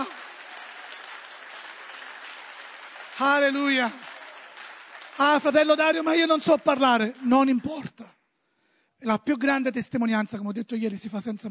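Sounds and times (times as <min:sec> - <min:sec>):
audience applause: 0:00.0 - 0:07.9
speech: 0:03.2 - 0:04.1, 0:05.2 - 0:08.2, 0:09.0 - 0:11.4.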